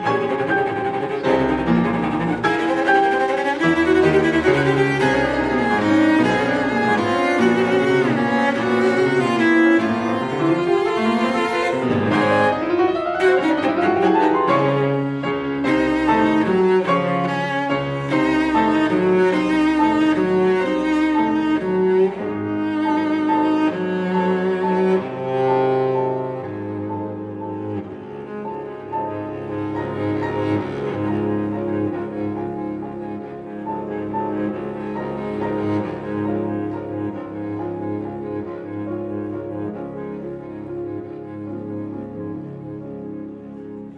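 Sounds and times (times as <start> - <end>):
cello in a sonata for cello and piano: 0.0 - 43.9
piano in a sonata for cello and piano: 0.0 - 43.9.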